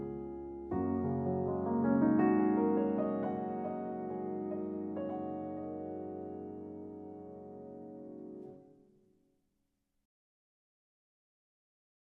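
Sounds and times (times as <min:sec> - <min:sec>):
solo piano: 0:00.0 - 0:09.0.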